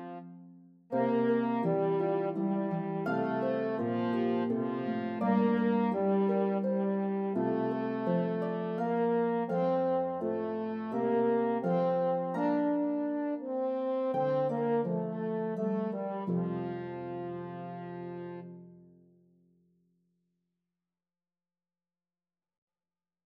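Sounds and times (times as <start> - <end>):
horn melody: 0.0 - 0.3, 0.9 - 18.6
harp: 0.0 - 18.6.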